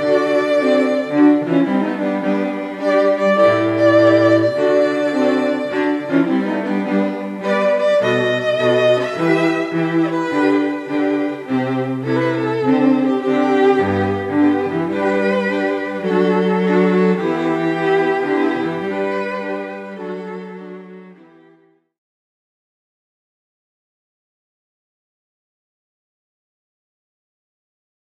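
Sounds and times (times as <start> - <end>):
string trio playing a pop song: 0.0 - 21.7.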